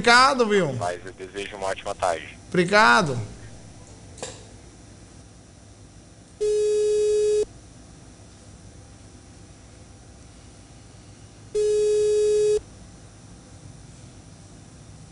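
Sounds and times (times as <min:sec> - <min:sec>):
speech: 0:00.0 - 0:03.4
telephone hold tone during a call transfer to a pharmacist: 0:06.4 - 0:07.5, 0:11.6 - 0:12.6.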